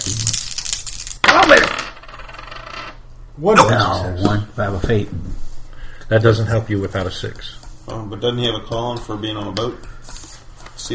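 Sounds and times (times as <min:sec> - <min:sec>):
dice clattering onto a hard tabletop: 0:00.0 - 0:02.9
speech: 0:03.4 - 0:05.4, 0:06.1 - 0:09.9.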